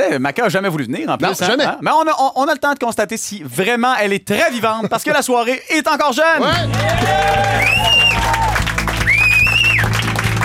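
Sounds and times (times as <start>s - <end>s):
speech: 0.1s - 8.4s
studio audience applause at a late-night talk show: 6.5s - 10.4s.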